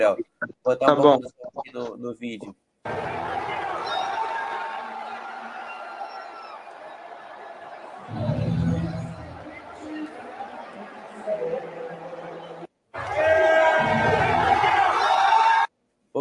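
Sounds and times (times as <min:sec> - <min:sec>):
speech: 0:00.0 - 0:04.0, 0:08.1 - 0:08.4
large crowd cheering wildly at sports event: 0:02.9 - 0:15.7.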